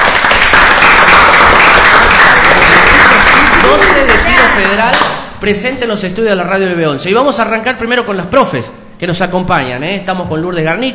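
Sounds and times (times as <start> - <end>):
applause: 0.0 - 5.3
speech: 5.4 - 10.9.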